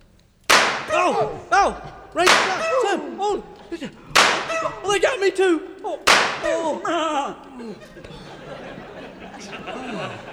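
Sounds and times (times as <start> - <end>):
laughter: 0.0 - 10.3
voices crying out and chattering: 0.0 - 10.3
gunshot in a Western shootout: 0.5 - 1.2, 2.2 - 3.0, 4.2 - 4.7, 6.1 - 6.7
speech: 1.1 - 8.6, 9.4 - 10.3.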